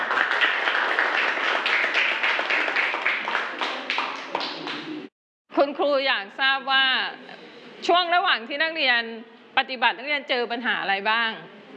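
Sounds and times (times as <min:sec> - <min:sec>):
classroom clapping for a student group: 0:00.0 - 0:05.1
speech: 0:05.7 - 0:11.6.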